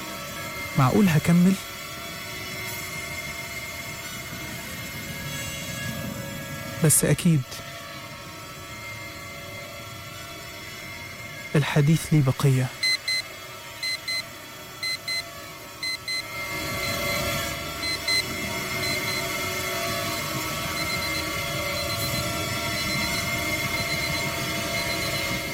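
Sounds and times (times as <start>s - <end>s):
speech: 0.8s - 1.8s, 6.8s - 7.7s, 11.6s - 12.8s
alarm clock ringing: 12.8s - 25.5s.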